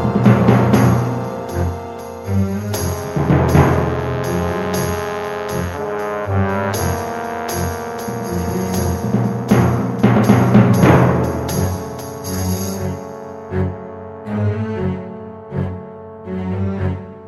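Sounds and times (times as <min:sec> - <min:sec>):
combat music: 0:00.0 - 0:17.2.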